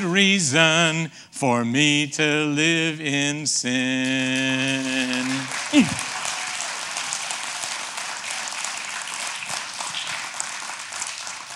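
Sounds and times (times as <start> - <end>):
speech: 0.0 - 6.1
audience clapping: 3.9 - 11.5.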